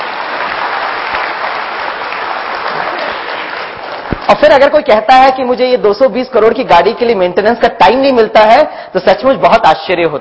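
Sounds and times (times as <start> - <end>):
crowd applause: 0.0 - 4.4
speech: 4.3 - 10.1.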